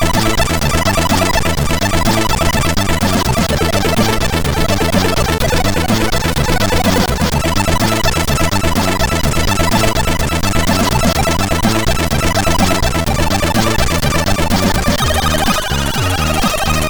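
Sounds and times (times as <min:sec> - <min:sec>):
MOS6581R3 chip synthesizer: 0:00.0 - 0:16.8.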